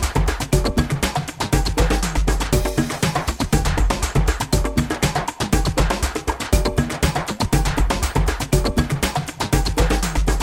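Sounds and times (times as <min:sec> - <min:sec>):
exotic drums: 0:00.0 - 0:10.4.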